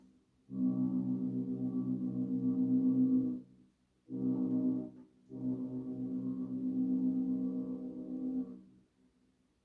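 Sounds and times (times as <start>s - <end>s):
coastal passenger ship horn blasts: 0.5s - 3.3s, 4.1s - 8.6s.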